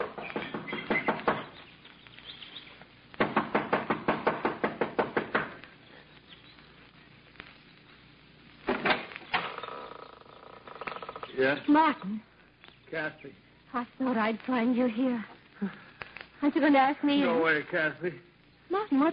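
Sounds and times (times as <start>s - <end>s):
impatient knocking on the front door of a small mountain lodge: 0.0s - 1.6s, 3.2s - 5.6s
speech: 11.4s - 12.3s, 12.9s - 15.8s, 16.4s - 18.3s, 18.9s - 19.1s.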